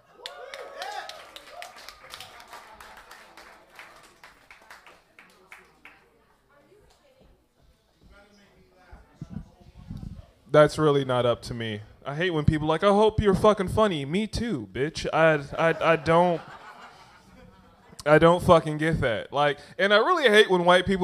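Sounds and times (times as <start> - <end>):
audience applause at an open mic comedy night at Funkin' Waffles: 0.0 - 6.0
speech: 10.5 - 16.6, 18.0 - 21.0
laughter: 15.4 - 18.0.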